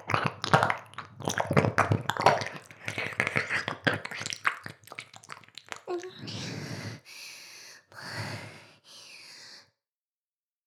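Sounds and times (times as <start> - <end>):
ear licking: 0.0 - 6.4.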